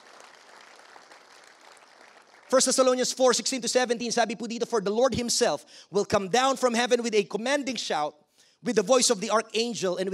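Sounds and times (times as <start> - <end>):
church congregation applauding: 0.0 - 3.2
speech: 2.5 - 10.1.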